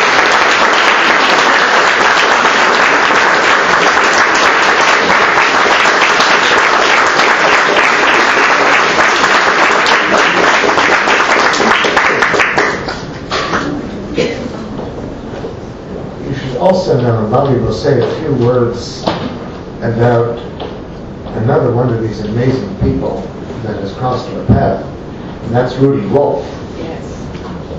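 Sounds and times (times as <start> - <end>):
audience applause: 0.0 - 13.6
speech: 16.6 - 19.1, 19.8 - 20.5, 21.4 - 26.6.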